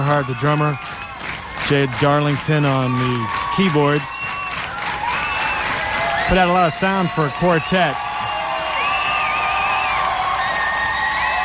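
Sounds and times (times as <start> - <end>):
concert crowd cheering for an encore in Boston: 0.0 - 11.4
speech: 0.1 - 1.0, 1.7 - 4.2, 6.3 - 8.0
high wavering whoops and whistles: 2.6 - 6.3, 8.0 - 11.4.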